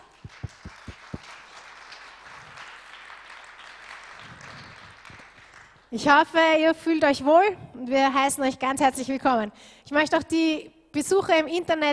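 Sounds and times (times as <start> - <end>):
audience applause: 0.0 - 5.9
speech: 5.9 - 11.9.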